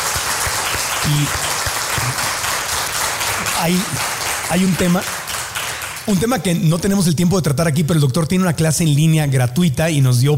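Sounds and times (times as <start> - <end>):
audience applause: 0.0 - 6.3
speech: 1.1 - 1.5, 3.6 - 5.2, 6.1 - 10.3.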